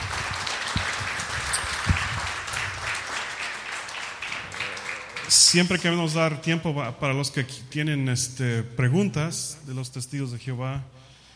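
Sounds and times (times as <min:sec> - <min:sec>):
audience applause: 0:00.0 - 0:06.1
speech: 0:05.3 - 0:11.0.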